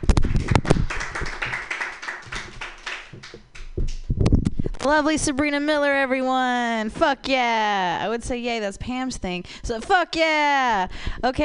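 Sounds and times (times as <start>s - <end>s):
audience applause for a comedian at a comedy open mic: 0.3s - 3.4s
speech: 4.8s - 11.4s.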